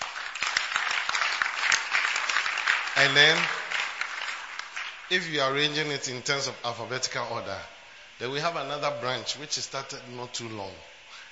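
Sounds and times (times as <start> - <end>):
audience clapping: 0.0 - 5.8
speech: 3.0 - 3.6, 5.1 - 10.9.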